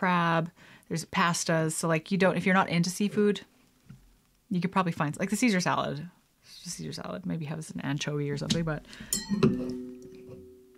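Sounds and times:
speech: 0:00.0 - 0:03.5, 0:04.5 - 0:09.8
wine glass knocked over, clinking: 0:09.1 - 0:10.6.

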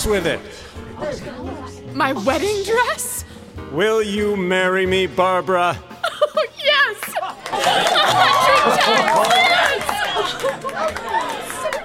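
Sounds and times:
speech: 0:00.0 - 0:05.9
laughter: 0:06.0 - 0:11.8
crowd cheering: 0:07.2 - 0:11.8.

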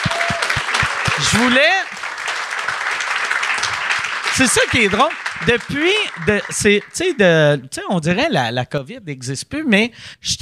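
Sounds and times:
audience applause: 0:00.0 - 0:07.4
speech: 0:01.2 - 0:01.9, 0:04.4 - 0:10.4.

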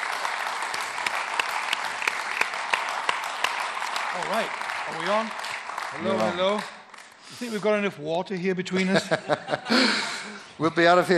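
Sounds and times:
audience applause: 0:00.0 - 0:07.9
speech: 0:04.2 - 0:11.1
laughter: 0:08.7 - 0:10.7.

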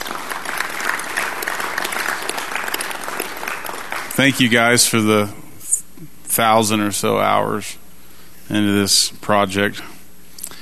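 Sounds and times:
audience applause: 0:00.0 - 0:04.8
speech: 0:04.2 - 0:05.4, 0:06.4 - 0:07.8, 0:08.5 - 0:09.9.

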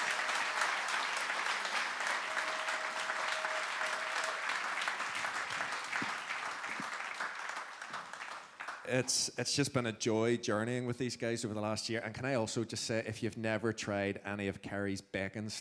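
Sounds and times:
crowd clapping: 0:00.0 - 0:09.3
speech: 0:08.9 - 0:15.5.

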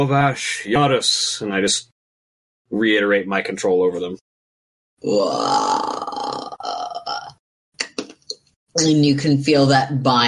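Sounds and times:
speech: 0:00.0 - 0:01.9, 0:02.7 - 0:04.3, 0:05.0 - 0:05.8, 0:08.8 - 0:10.2
person imitating zombie groan: 0:05.1 - 0:06.9.

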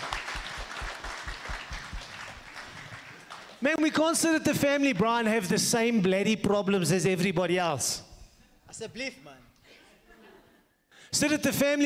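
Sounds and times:
audience applause: 0:00.0 - 0:03.6
speech: 0:03.6 - 0:08.1, 0:08.8 - 0:09.5, 0:11.1 - 0:11.8.

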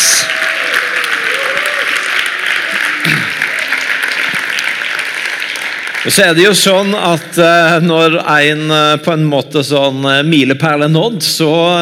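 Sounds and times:
people cheering: 0:00.0 - 0:07.2
audience clapping in celebration: 0:00.0 - 0:08.0
speech: 0:06.0 - 0:11.8.

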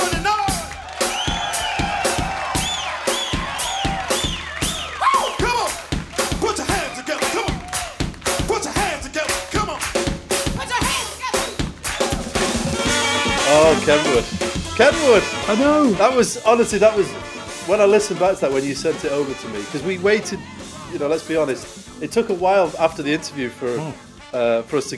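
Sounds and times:
crowd clapping: 0:00.0 - 0:16.2
crowd cheering: 0:00.0 - 0:22.8
whoops and whistles: 0:01.0 - 0:05.5
speech: 0:13.9 - 0:24.9.

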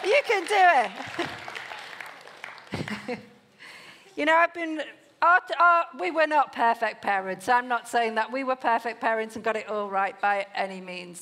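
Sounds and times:
speech: 0:00.0 - 0:01.4, 0:02.8 - 0:03.3, 0:04.2 - 0:11.2
audience clapping: 0:00.0 - 0:03.3.

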